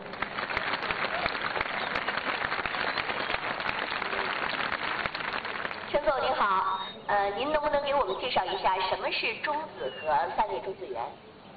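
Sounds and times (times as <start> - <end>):
audience applause: 0.0 - 5.9
speech: 6.2 - 11.3.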